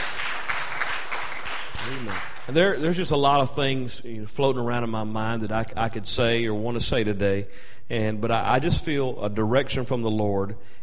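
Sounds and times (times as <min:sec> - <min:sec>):
audience round of applause: 0:00.0 - 0:02.8
speech: 0:01.9 - 0:10.8.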